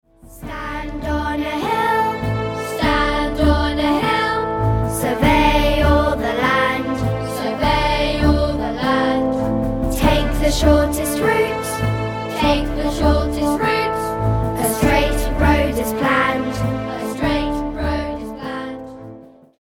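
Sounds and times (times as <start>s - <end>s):
song: 0.2s - 19.4s.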